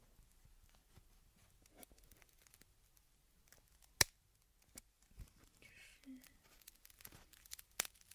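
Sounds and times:
tempered glass screen protector cracking: 0:01.6 - 0:05.5, 0:06.4 - 0:08.1.

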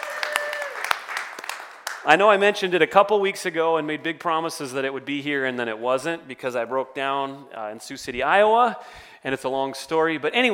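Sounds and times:
audience clapping hands in praise: 0:00.0 - 0:02.2
speech: 0:02.0 - 0:10.5.

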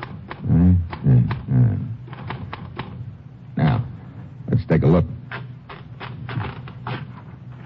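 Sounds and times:
typing on a typewriter: 0:00.0 - 0:01.4, 0:02.1 - 0:03.0, 0:05.3 - 0:07.2
speech: 0:05.0 - 0:05.2.

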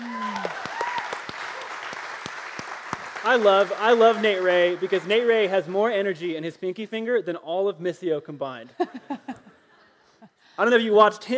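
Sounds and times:
audience round of applause: 0:00.0 - 0:05.8
speech: 0:03.2 - 0:09.2, 0:10.6 - 0:11.3.

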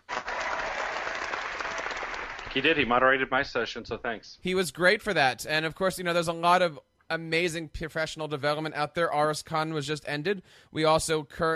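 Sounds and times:
round of applause: 0:00.0 - 0:03.0
speech: 0:02.5 - 0:11.5.

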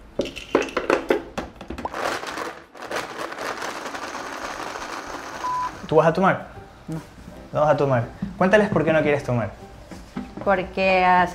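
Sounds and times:
crunching clatters in a blender: 0:01.8 - 0:05.8
blender blending a drink of egg and blackberries: 0:01.9 - 0:05.9
speech: 0:05.9 - 0:09.6, 0:10.4 - 0:11.3.

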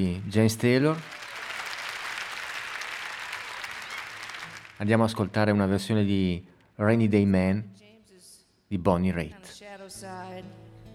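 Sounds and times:
speech: 0:00.0 - 0:01.2, 0:04.8 - 0:07.8, 0:08.7 - 0:10.8
large audience applause at live concert: 0:00.2 - 0:04.9.

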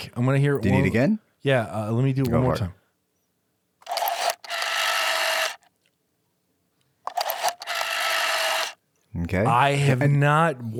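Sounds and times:
speech: 0:00.0 - 0:02.8, 0:09.2 - 0:10.7
rotary phone dialing: 0:03.8 - 0:05.7, 0:07.1 - 0:08.8.

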